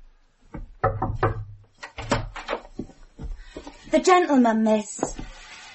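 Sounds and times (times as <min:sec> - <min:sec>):
knocking on a door: 0:00.6 - 0:01.6
speech: 0:03.9 - 0:05.2.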